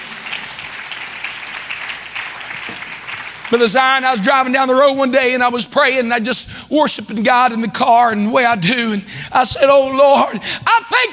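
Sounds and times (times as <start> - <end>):
audience clapping hands: 0.0 - 4.4
speech: 3.5 - 11.1.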